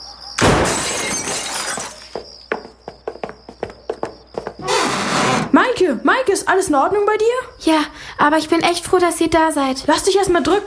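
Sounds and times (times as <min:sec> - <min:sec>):
basement window glass shattering as it is broken open: 0:00.4 - 0:02.2
speech: 0:05.6 - 0:10.6.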